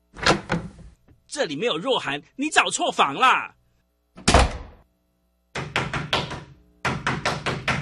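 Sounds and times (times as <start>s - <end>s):
speech: 1.3s - 3.6s
knocking on a room door: 5.6s - 7.8s.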